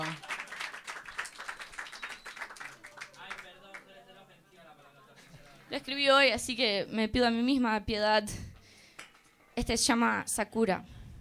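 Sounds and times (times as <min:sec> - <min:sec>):
audience applause: 0:00.0 - 0:03.9
speech: 0:05.7 - 0:08.5, 0:09.6 - 0:10.9.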